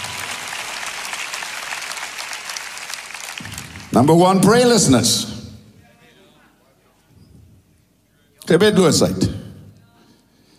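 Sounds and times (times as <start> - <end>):
audience clapping: 0.0 - 4.8
speech: 3.9 - 5.4, 8.5 - 9.4.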